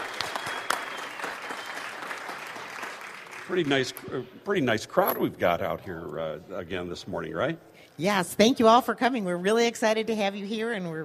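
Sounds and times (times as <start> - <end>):
audience applause: 0.0 - 3.8
speech: 3.5 - 11.0.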